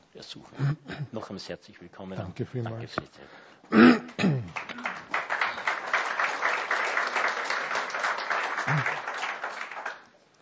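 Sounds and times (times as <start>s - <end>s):
speech: 0.2s - 4.5s
audience applause: 4.2s - 10.2s.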